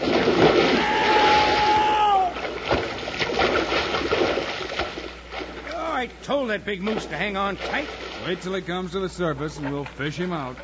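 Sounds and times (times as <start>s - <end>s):
heavy splash of logs into a lake: 0.0s - 5.8s, 6.8s - 8.4s
water sloshing: 0.0s - 10.0s
speech: 6.3s - 10.6s.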